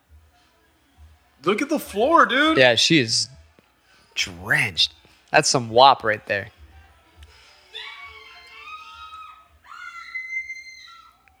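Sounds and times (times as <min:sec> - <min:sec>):
speech: 0:01.4 - 0:03.3, 0:04.2 - 0:06.6
woman screaming: 0:07.7 - 0:11.2.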